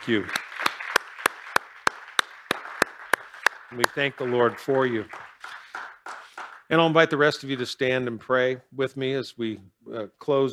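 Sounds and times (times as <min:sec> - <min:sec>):
speech: 0:00.0 - 0:00.4, 0:03.7 - 0:05.2, 0:06.7 - 0:10.5
audience clapping: 0:00.0 - 0:07.9.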